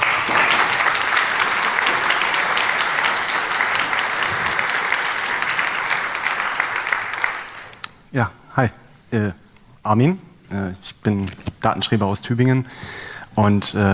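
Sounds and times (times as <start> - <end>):
audience applause: 0.0 - 7.9
speech: 8.1 - 13.9.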